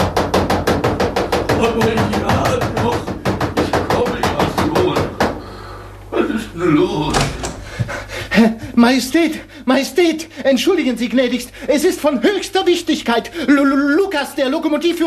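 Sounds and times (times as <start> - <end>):
frantic pounding on a wooden door: 0.0 - 5.4, 7.1 - 8.0
speech: 1.6 - 2.3, 8.8 - 15.0.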